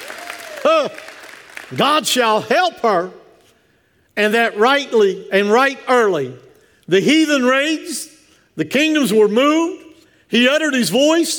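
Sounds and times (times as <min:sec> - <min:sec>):
audience shouting praise: 0:00.0 - 0:01.7
audience clapping hands: 0:00.0 - 0:02.1
speech: 0:00.8 - 0:01.1, 0:01.7 - 0:03.2, 0:04.2 - 0:11.3.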